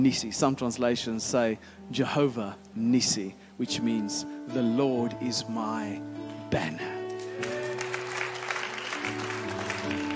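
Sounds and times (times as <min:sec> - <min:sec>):
speech: 0:00.0 - 0:07.0
audience clapping: 0:07.0 - 0:10.1.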